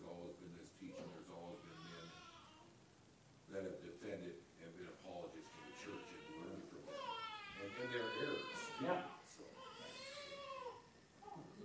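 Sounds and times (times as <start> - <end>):
newborn baby crying: 0.9 - 2.7, 5.4 - 11.4
speech: 3.5 - 10.1.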